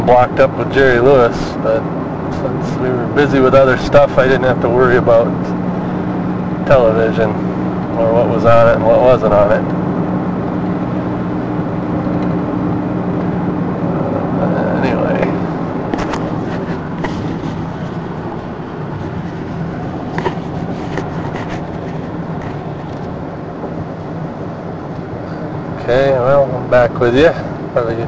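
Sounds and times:
car road and engine rumble on a commute home: 0.0s - 28.0s
speech: 0.1s - 5.6s, 6.6s - 9.8s, 26.7s - 28.0s.

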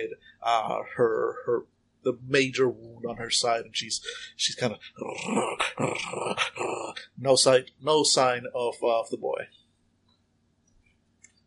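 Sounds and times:
speech: 0.0s - 9.6s
wounded she-wolf growling: 5.1s - 7.0s.

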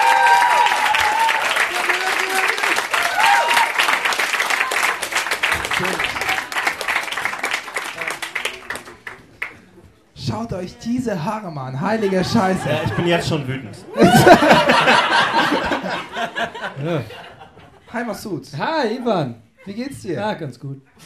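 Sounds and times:
whoops and cheering voices: 0.0s - 3.9s
audience applause: 0.0s - 9.7s, 14.0s - 16.7s
speech: 10.4s - 17.3s, 17.9s - 21.0s
laughter: 11.9s - 17.9s.

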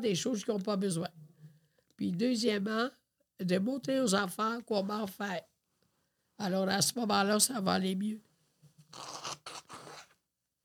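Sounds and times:
speech: 0.0s - 1.2s, 2.0s - 5.5s, 6.4s - 8.3s, 8.9s - 9.4s
person blowing their nose: 9.0s - 10.2s.

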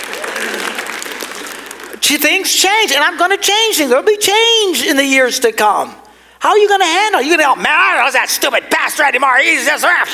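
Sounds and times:
audience clapping: 0.0s - 2.4s
speech: 2.0s - 10.1s.

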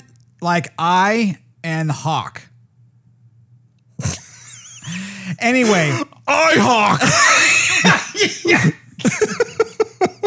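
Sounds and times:
speech: 0.4s - 2.5s, 5.4s - 9.6s
choking cough on own saliva: 4.0s - 4.3s, 5.6s - 9.4s
laughter: 6.9s - 10.2s.

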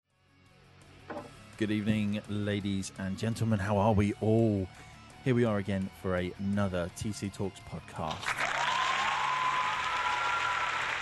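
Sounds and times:
speech: 1.6s - 8.4s
crowd applause: 8.1s - 11.0s.

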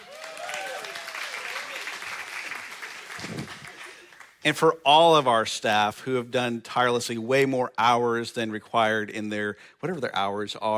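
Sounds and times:
audience clapping: 0.0s - 4.4s
speech: 4.4s - 10.7s.

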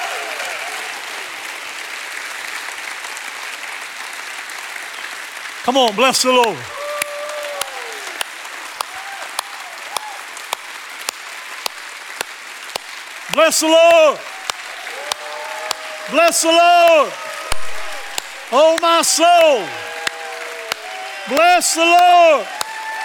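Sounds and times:
crowd clapping: 0.0s - 23.0s
speech: 5.6s - 6.8s, 13.4s - 14.4s, 16.1s - 17.3s, 18.5s - 19.9s, 21.3s - 22.6s
person shouting: 13.3s - 14.2s, 16.0s - 19.8s.

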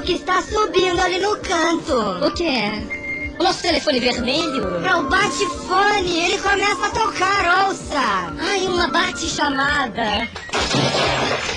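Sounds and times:
speech: 0.0s - 11.5s
crash of someone falling onto cuckoo clock: 10.4s - 11.5s.

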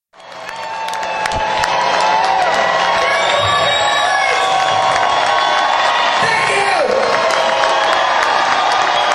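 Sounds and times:
concert crowd cheering as band leaves the stage: 0.1s - 9.1s.

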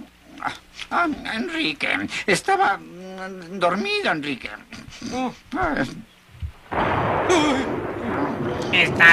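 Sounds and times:
speech: 0.4s - 6.1s, 6.8s - 7.8s, 8.6s - 9.1s
thunder: 6.6s - 9.1s.

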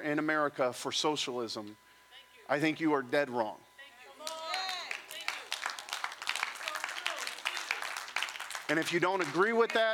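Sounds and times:
speech: 0.0s - 1.9s, 2.5s - 3.7s, 8.7s - 9.9s
audience clapping: 4.2s - 9.9s.

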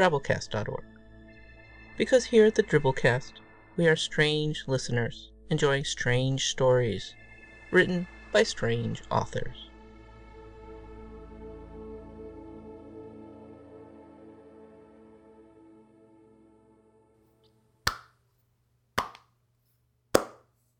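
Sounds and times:
speech: 0.0s - 1.0s, 2.0s - 9.6s
slow golf clap: 19.0s - 19.2s, 20.2s - 20.4s.

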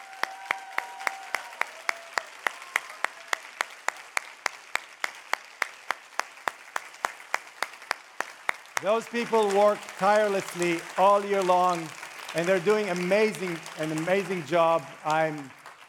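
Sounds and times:
brief cheers: 0.0s - 3.5s
audience clapping: 0.0s - 15.8s
speech: 8.8s - 15.6s
crowd noise: 8.8s - 15.8s.

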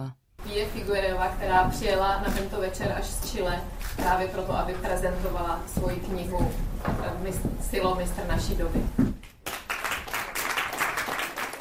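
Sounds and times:
speech: 0.0s - 9.2s
audience clapping to welcome Pía Figueroa at an evening book presentation: 9.2s - 11.5s.

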